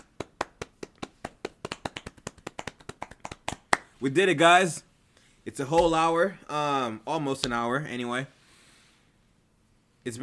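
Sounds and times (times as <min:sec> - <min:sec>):
person clapping hands: 0:00.0 - 0:04.0
speech: 0:04.0 - 0:04.9, 0:05.5 - 0:08.4, 0:10.0 - 0:10.2.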